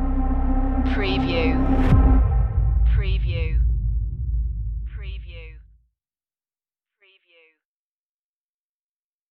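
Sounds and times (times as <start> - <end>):
bass drums: 0.2 - 5.7.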